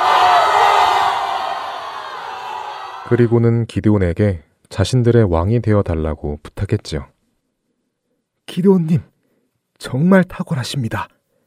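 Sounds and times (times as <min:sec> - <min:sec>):
crowd cheering: 0:00.0 - 0:03.4
speech: 0:03.1 - 0:07.1, 0:08.5 - 0:09.1, 0:09.8 - 0:11.2.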